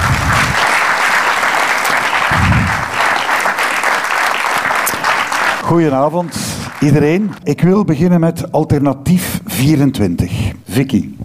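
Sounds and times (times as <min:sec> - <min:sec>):
audience applause: 0:00.0 - 0:07.4
speech: 0:05.7 - 0:11.2.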